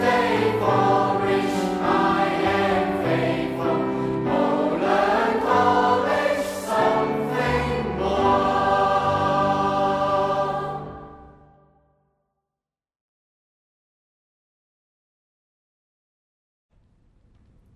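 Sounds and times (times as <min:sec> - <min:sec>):
school song with English vocals: 0:00.0 - 0:11.5.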